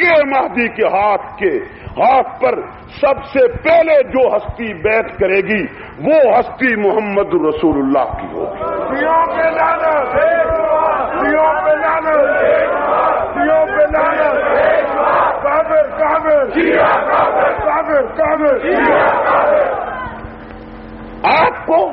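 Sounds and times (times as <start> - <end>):
speech: 0.0 - 10.5, 15.8 - 19.8, 21.2 - 21.9
many voices chanting a religious slogan: 8.4 - 20.2.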